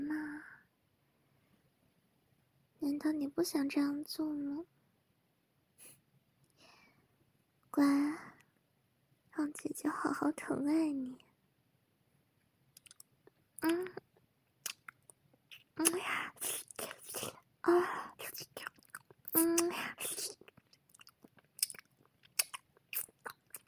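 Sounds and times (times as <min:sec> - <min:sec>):
speech: 0:02.8 - 0:04.8, 0:07.7 - 0:08.4, 0:09.4 - 0:11.2, 0:13.6 - 0:14.0, 0:15.8 - 0:18.7, 0:19.3 - 0:20.4
chewing and crunching on fire dragon pills: 0:14.6 - 0:16.0, 0:18.6 - 0:23.6.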